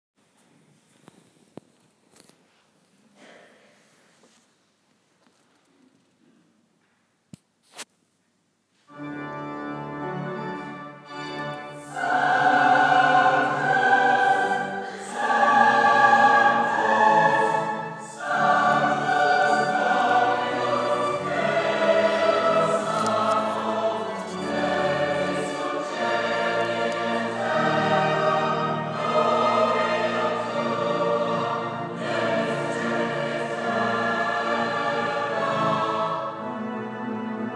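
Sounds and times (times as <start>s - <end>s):
combined choirs singing a Sanctus: 11.3s - 37.5s.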